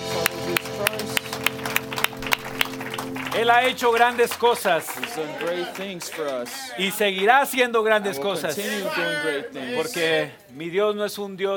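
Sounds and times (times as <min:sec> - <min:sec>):
sustained music: 0:00.0 - 0:05.6
church congregation clapping in time: 0:00.0 - 0:07.8
speech: 0:03.4 - 0:11.5.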